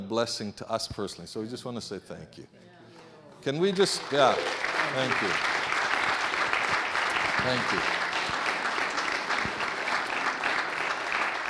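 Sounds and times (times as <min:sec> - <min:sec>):
speech: 0:00.1 - 0:02.8, 0:03.4 - 0:05.6, 0:07.4 - 0:08.0
audience applause: 0:03.6 - 0:11.4.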